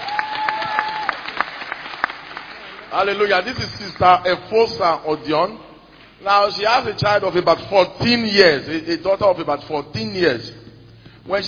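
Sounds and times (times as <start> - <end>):
audience applauding: 0.0 - 3.2
speech: 2.9 - 10.6, 11.2 - 11.4.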